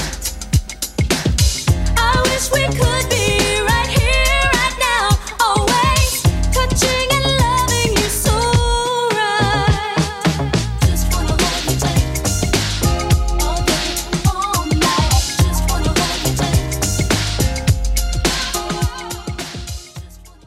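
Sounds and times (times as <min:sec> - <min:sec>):
90s-style music at 105 bpm: 0:00.0 - 0:20.4.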